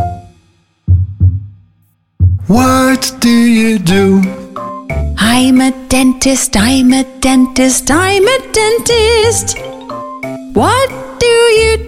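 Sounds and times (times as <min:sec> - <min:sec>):
heartbeat: 0:00.9 - 0:01.6, 0:02.2 - 0:02.7
speech: 0:02.5 - 0:04.4, 0:05.6 - 0:09.7, 0:10.6 - 0:11.8.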